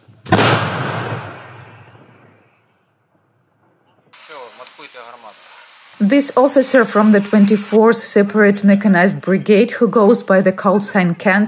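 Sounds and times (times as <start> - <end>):
Paladin 155mm howitzer firing: 0.0 - 4.1
speech: 4.6 - 11.4.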